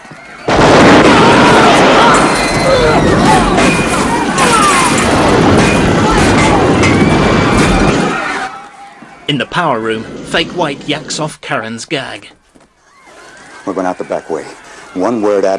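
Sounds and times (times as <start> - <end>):
gunfire in a film shootout at a skating rink: 0.5 - 8.4
crashes: 0.5 - 8.5
speech: 9.3 - 12.4, 13.7 - 15.5.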